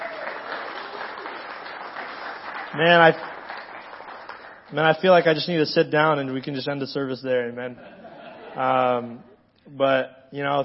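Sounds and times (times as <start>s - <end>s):
audience applause: 0.0s - 5.5s
speech: 2.7s - 3.3s, 4.7s - 8.0s, 8.6s - 10.6s
laughter: 7.7s - 9.2s.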